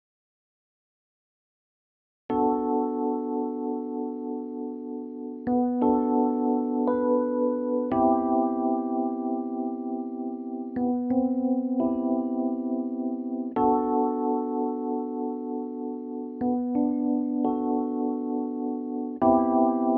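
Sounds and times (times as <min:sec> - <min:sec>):
piano: 0:02.3 - 0:19.9.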